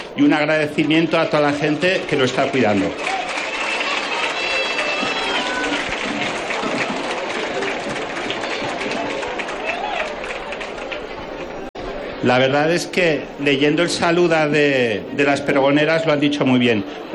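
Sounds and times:
crowd of townspeople applauding: 0.0 - 11.7
scattered voices and cheers: 0.0 - 17.1
speech: 0.2 - 3.2, 12.2 - 17.1.

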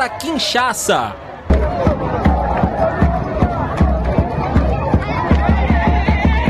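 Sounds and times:
speech: 0.0 - 1.2
crowd of football fans celebrating: 0.0 - 6.4
punchy beats like drums or stamping: 1.5 - 6.4.

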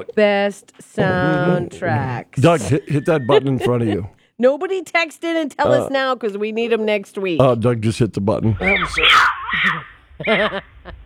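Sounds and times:
speech: 0.0 - 11.0
laughter: 0.8 - 4.2, 8.5 - 11.0
mountain lion scream: 8.5 - 10.0.

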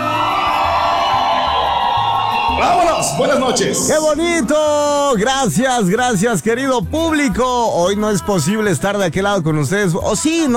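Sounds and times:
radio station live audience cheering and shouting in the Valley of Mexico: 0.0 - 5.7
speech: 2.6 - 10.5.

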